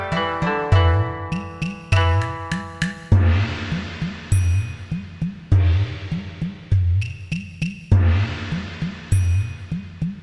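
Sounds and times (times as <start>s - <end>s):
Chinese gong: 0.2s - 5.7s, 8.0s - 9.9s.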